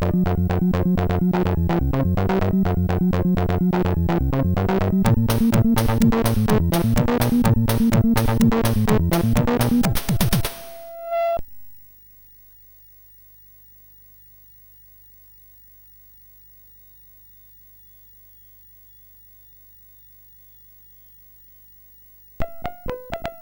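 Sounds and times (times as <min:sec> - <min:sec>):
techno noise music: 0:00.0 - 0:11.0.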